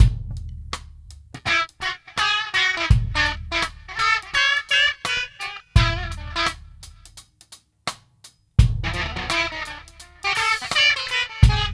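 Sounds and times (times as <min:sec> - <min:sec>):
music loop: 0:01.4 - 0:07.0, 0:08.6 - 0:11.7.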